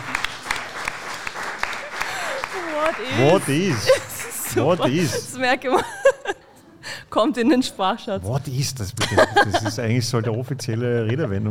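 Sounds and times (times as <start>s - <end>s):
audience clapping: 0.0s - 5.4s
laughter: 1.6s - 6.8s, 9.0s - 11.4s
speech: 2.8s - 6.0s, 7.1s - 11.4s.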